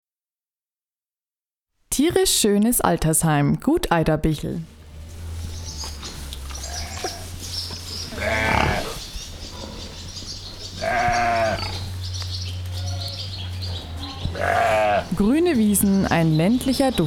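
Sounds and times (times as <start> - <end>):
speech: 2.0 - 4.8, 15.2 - 17.0
sheep bleating at the Gut Eiderbichl animal sanctuary near Deggendorf: 6.6 - 7.4, 8.1 - 9.0, 10.8 - 11.9, 12.7 - 13.3, 13.9 - 15.2.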